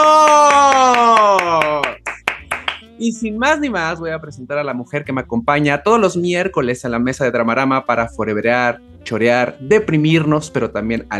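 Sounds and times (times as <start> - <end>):
applause: 0.0 - 2.9
speech: 3.0 - 11.1.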